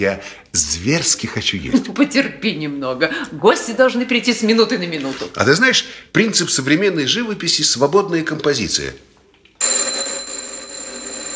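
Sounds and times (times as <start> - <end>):
speech: 0.0 - 9.8
telephone ringing in a home: 9.6 - 11.3.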